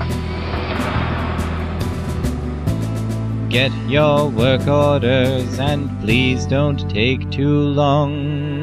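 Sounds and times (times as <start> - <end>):
truck engine rumbling: 0.0 - 6.1
speech: 3.5 - 8.5.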